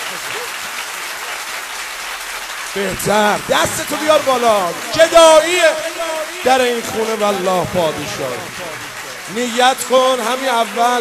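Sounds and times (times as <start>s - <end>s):
audience clapping at a religious gathering honoring Imam Ali: 0.0s - 10.9s
speech: 2.8s - 10.9s.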